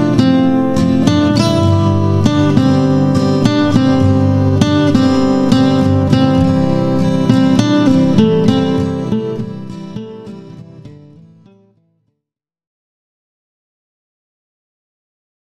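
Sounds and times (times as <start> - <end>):
guitar solo: 0.0 - 11.8.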